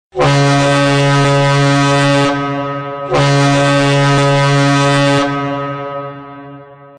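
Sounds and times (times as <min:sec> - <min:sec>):
ship horn: 0:00.1 - 0:06.9.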